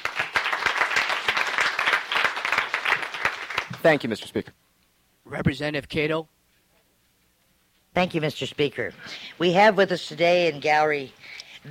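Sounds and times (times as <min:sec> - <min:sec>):
applause from a legislative gallery welcoming guests: 0:00.0 - 0:04.3
speech: 0:03.8 - 0:04.6, 0:05.3 - 0:06.4, 0:08.0 - 0:11.6.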